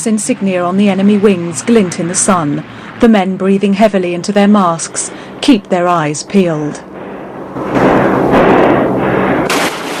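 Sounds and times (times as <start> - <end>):
speech: 0.0 - 6.9
aircraft machine gun fire: 7.6 - 9.9.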